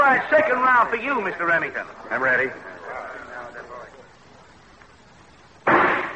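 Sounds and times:
speech: 0.1s - 2.7s
gunshot fired at a target during a shooting contest: 5.6s - 6.1s.

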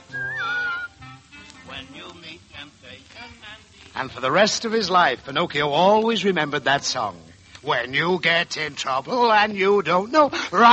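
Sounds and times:
person whistling: 0.0s - 1.0s
speech: 4.0s - 10.7s.

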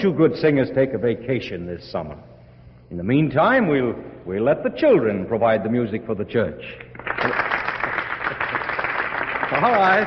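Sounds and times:
speech: 0.0s - 2.3s, 2.9s - 7.5s, 9.5s - 10.0s
audience applause: 7.0s - 10.0s.

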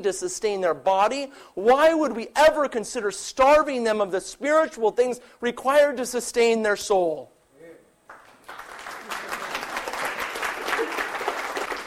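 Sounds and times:
speech: 0.0s - 7.3s
room full of people applauding: 8.1s - 11.8s.

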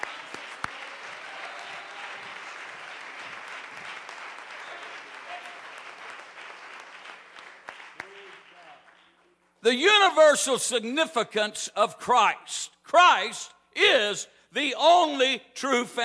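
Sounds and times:
audience clapping hands: 0.0s - 9.6s
speech: 9.6s - 16.0s.

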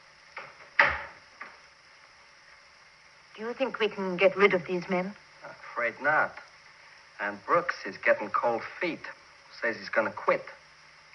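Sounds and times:
door pushed shut: 0.4s - 1.6s
speech: 3.4s - 5.2s, 5.8s - 6.4s, 7.2s - 10.6s.

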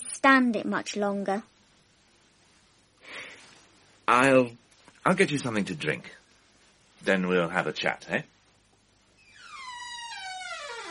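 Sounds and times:
speech: 0.2s - 1.6s, 4.1s - 6.2s, 7.0s - 8.3s
creaking door hinges: 9.2s - 10.8s.

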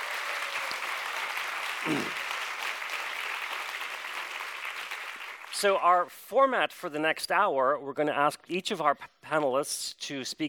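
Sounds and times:
audience applause welcoming two panelists: 0.0s - 5.6s
speech: 1.8s - 2.2s, 5.6s - 10.4s.

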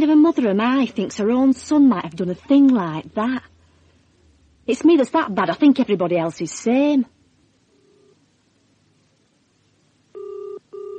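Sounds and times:
speech: 0.0s - 3.5s, 4.7s - 7.2s
telephone ringing: 10.1s - 10.9s.

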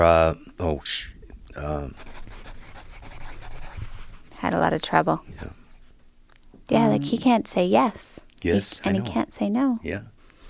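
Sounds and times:
speech: 0.0s - 1.2s, 4.6s - 5.5s, 7.0s - 10.1s
pen scratching as a name is written during an aphasia group session: 2.0s - 3.8s.

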